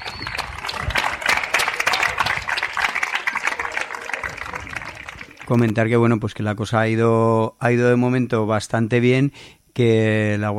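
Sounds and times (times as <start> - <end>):
crowd applauding outside courthouse: 0.0 - 5.7
speech: 5.5 - 10.5.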